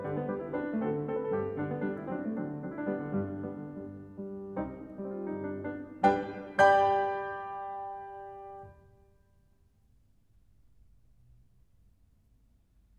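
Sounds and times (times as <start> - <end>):
piano nocturne in B flat major: 0.0 - 9.6.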